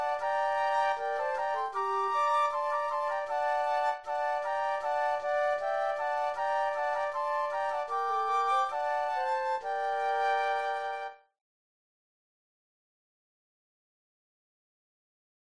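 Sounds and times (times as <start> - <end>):
Christmas flute trio: 0.0 - 11.2.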